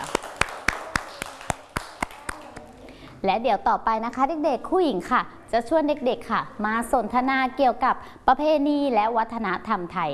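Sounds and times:
children clapping hands: 0.0 - 2.8
speech: 3.2 - 10.1.

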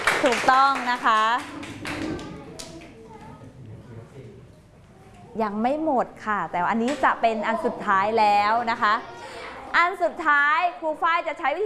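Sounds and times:
children clapping for classmates: 0.0 - 3.0
speech: 0.2 - 1.8, 5.4 - 11.6.

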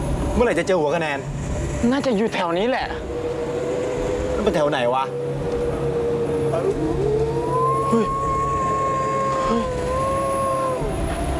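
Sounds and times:
constant low rumble and murmur: 0.0 - 11.3
speech: 0.4 - 3.3, 4.4 - 5.2, 7.9 - 8.2
dog howling: 6.0 - 11.3.

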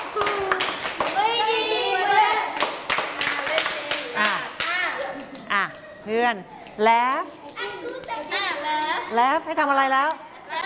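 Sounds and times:
children clapping hands: 0.0 - 1.3, 2.2 - 5.8, 7.4 - 9.0
speech: 6.1 - 7.4, 8.2 - 10.2.

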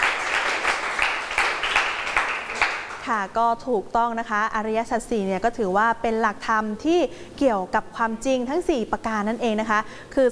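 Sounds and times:
classroom applause: 0.0 - 3.1
speech: 3.1 - 10.3.

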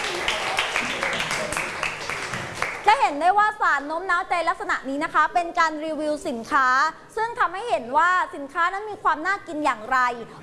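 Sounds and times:
audience applause: 0.0 - 2.9
speech: 3.0 - 10.4.

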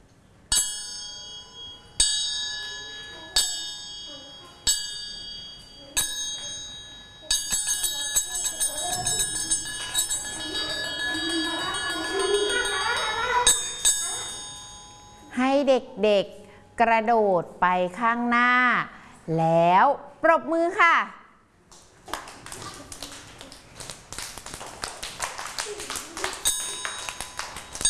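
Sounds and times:
bell signal ringing: 0.5 - 15.3, 26.2 - 27.8
speech: 15.8 - 21.2.

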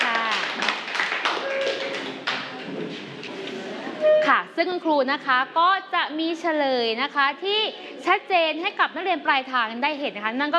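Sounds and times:
classroom applause, hands clapping: 0.0 - 3.1
speech: 4.6 - 10.5.

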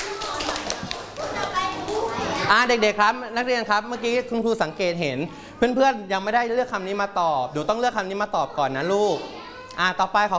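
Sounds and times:
children clapping for a classmate in class: 0.0 - 2.3
children chattering in class: 0.0 - 10.3
speech: 2.5 - 10.3.

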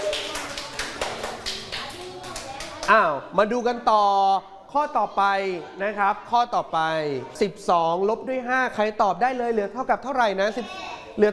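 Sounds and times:
people clapping: 0.0 - 3.1
speech: 2.9 - 11.3.

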